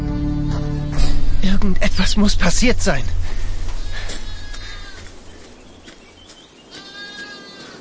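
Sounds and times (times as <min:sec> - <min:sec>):
low hum: 0:00.2 - 0:06.2
speech: 0:01.5 - 0:03.2
bloodied lamb bleating: 0:04.4 - 0:05.1, 0:06.7 - 0:07.8.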